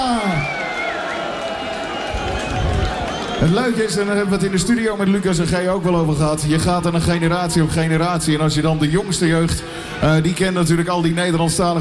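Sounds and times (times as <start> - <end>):
audience applause: 0.0 - 4.3
speech: 3.4 - 11.7.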